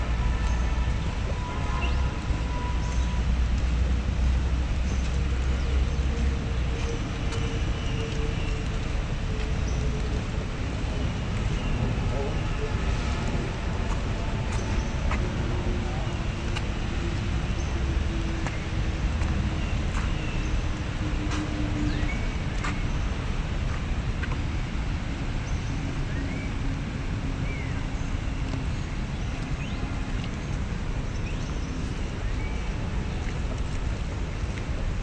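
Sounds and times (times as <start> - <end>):
low traffic rumble in Manhattan: 0.0 - 35.0
rain falling in Central Park: 0.0 - 35.0
faint voices in Central Park: 10.3 - 17.4.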